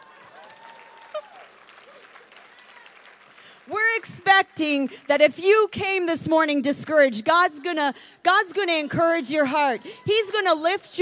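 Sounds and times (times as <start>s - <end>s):
audience applause: 0.0s - 3.7s
speech: 3.7s - 10.9s.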